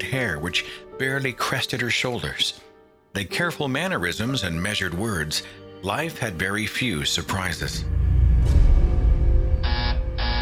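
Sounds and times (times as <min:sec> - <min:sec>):
speech: 0:00.0 - 0:08.6
patient call button buzzer at a nurse's station: 0:09.6 - 0:10.4.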